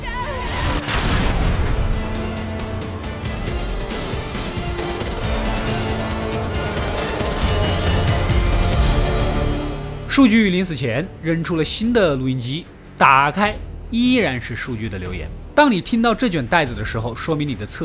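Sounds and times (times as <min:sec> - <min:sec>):
explosion sound effect: 0:00.5 - 0:10.0
speech: 0:10.2 - 0:17.8.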